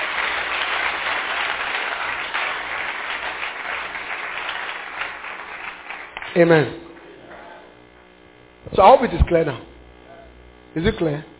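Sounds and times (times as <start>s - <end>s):
audience clapping hands: 0.0s - 7.2s
speech: 6.3s - 6.8s, 8.8s - 9.7s, 10.8s - 11.3s.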